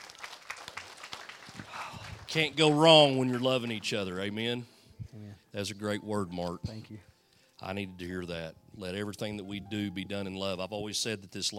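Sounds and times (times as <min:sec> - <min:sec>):
audience hand clapping: 0:00.0 - 0:04.4
speech: 0:02.3 - 0:11.5.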